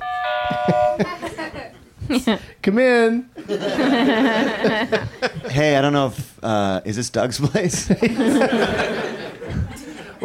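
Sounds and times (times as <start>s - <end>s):
game buzzer sounding like a doorbell chime: 0.0s - 1.1s
speech: 0.5s - 1.2s, 2.1s - 9.0s
laughter: 0.5s - 2.4s, 3.4s - 5.6s, 7.4s - 10.2s.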